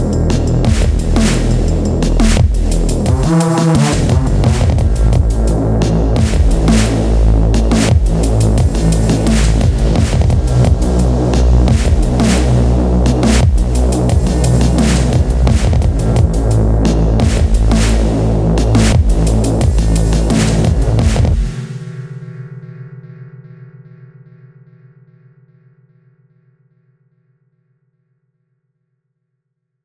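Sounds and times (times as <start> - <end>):
drum and bass music: 0.0 - 22.6.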